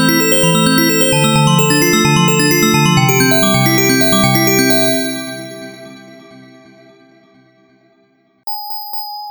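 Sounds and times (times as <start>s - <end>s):
bells ringing: 0.0s - 6.2s.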